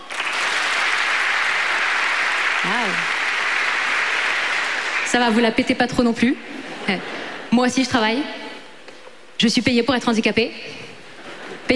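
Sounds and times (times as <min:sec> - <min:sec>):
audience applause in a live comedy hall: 0:00.0 - 0:05.7
speech: 0:02.6 - 0:03.1, 0:05.1 - 0:08.4, 0:09.4 - 0:10.8.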